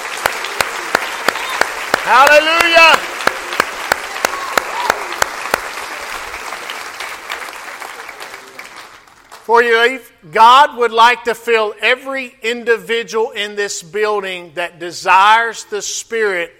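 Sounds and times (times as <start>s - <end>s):
audience clapping hands: 0.0s - 9.5s
speech: 2.1s - 3.1s, 9.5s - 16.5s.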